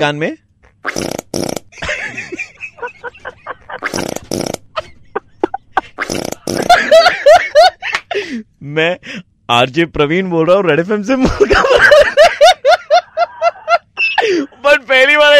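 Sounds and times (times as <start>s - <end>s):
speech: 0.0s - 1.9s, 8.7s - 11.9s
loud rasping fart sounds: 0.6s - 1.8s, 3.7s - 4.8s, 6.0s - 6.8s
laughter: 1.8s - 4.0s, 4.7s - 8.2s, 11.2s - 14.5s.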